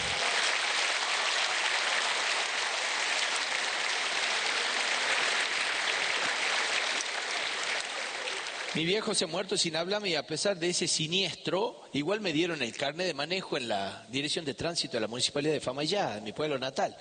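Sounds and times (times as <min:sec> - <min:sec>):
applause: 0:00.0 - 0:09.1
speech: 0:08.8 - 0:16.9.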